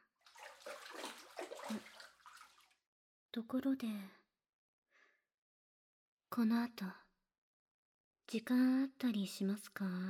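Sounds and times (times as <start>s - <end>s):
water poured to rinse a body in a bath: 0.3s - 2.8s
speech: 1.7s - 1.9s, 3.4s - 4.2s, 6.4s - 7.0s, 8.3s - 10.0s.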